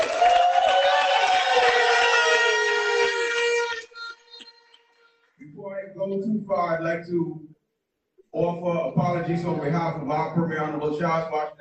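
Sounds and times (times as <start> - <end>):
applause for graduates: 0.0 - 5.0
whistling: 3.8 - 5.3
speech: 6.5 - 7.5, 8.4 - 11.5.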